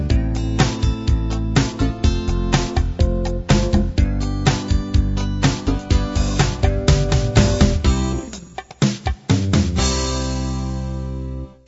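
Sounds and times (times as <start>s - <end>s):
light rock music: 0.0s - 11.6s.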